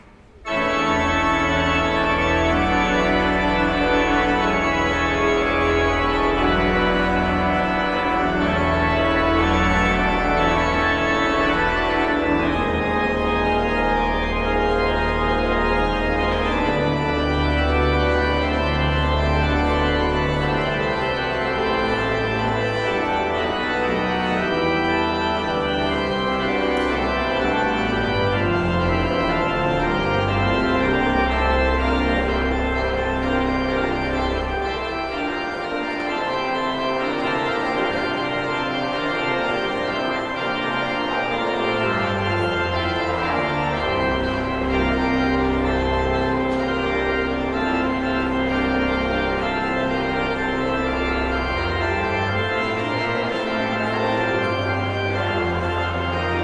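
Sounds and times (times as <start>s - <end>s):
postlude: 0.0s - 56.4s.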